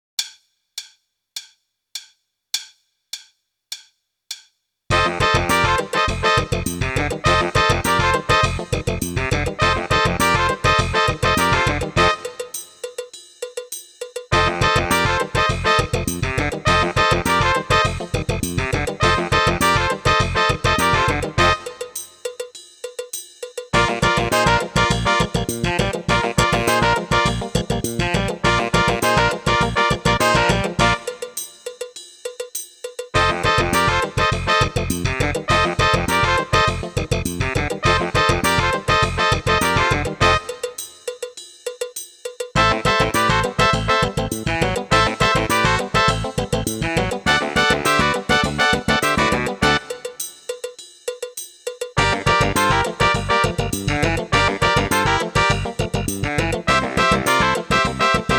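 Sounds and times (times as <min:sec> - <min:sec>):
funk music: 0:04.9 - 0:12.8, 0:14.3 - 0:22.1, 0:23.7 - 0:31.5, 0:33.2 - 0:41.0, 0:42.6 - 0:50.4, 0:52.0 - 0:58.3.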